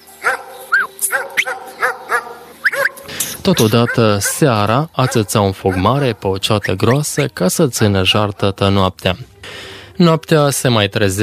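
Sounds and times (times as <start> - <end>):
dog barking and whimpering: 0.2 - 8.7
speech: 3.4 - 11.2.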